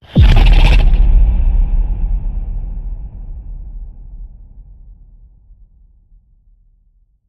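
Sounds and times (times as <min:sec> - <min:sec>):
centaur snarl: 0:00.0 - 0:01.0
boom: 0:00.0 - 0:05.7.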